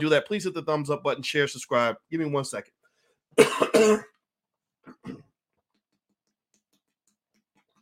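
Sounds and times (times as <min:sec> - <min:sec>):
speech: 0:00.0 - 0:04.2
person choking: 0:03.4 - 0:04.1.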